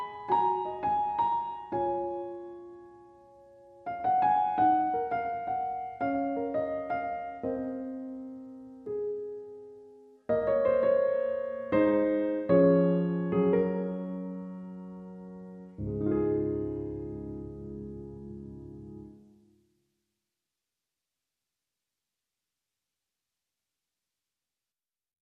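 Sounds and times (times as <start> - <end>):
dramatic piano music: 0.0 - 9.6, 10.3 - 19.2.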